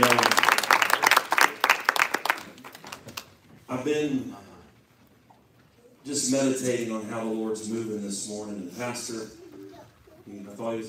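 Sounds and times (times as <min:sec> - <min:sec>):
church congregation hand clapping at a revival Sunday service: 0:00.0 - 0:03.4
speech: 0:03.7 - 0:04.5, 0:06.0 - 0:09.4, 0:10.6 - 0:10.8.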